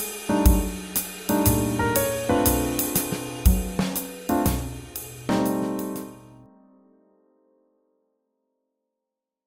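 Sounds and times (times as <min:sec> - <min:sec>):
swing jazz: 0:00.2 - 0:06.3.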